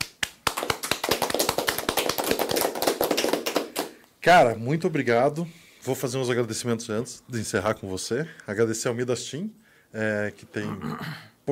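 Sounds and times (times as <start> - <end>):
audience clapping: 0.0 - 4.1
speech: 4.2 - 11.4.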